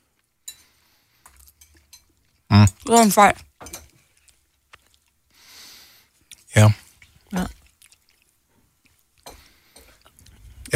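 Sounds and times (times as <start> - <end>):
speech: 2.6 - 3.8
wet chewing and biting while tasting a sausage: 4.1 - 5.2, 6.2 - 9.2.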